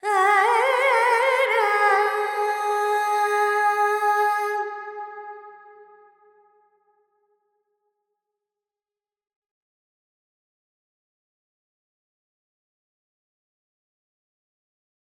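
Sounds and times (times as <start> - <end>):
Carnatic female alap in Lydian with reverb: 0.0 - 5.0.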